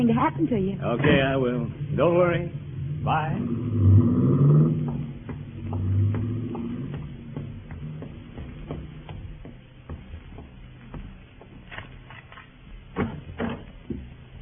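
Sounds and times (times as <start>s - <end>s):
speech: 0.0s - 5.0s
car driving off: 0.8s - 10.8s.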